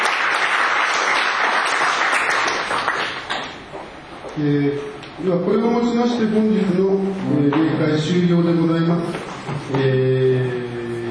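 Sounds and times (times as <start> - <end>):
audience applause: 0.0 - 3.6
speech: 4.4 - 11.0.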